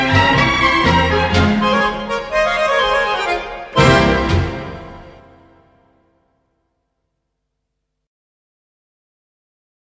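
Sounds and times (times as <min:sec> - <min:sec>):
pizzicato tango music: 0:00.0 - 0:05.9.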